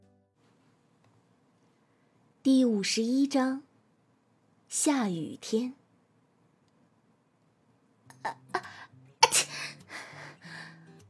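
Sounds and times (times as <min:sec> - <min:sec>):
speech: 0:02.5 - 0:03.7, 0:04.7 - 0:05.8
person sneezing: 0:08.1 - 0:09.8.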